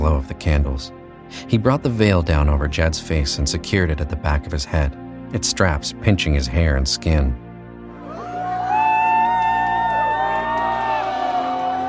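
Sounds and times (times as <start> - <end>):
speech: 0.1 - 7.4
audience applause: 8.1 - 11.8.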